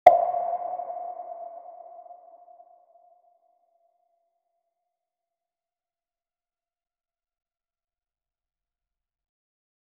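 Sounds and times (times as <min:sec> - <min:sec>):
plop with reverb: 0:00.1 - 0:02.7.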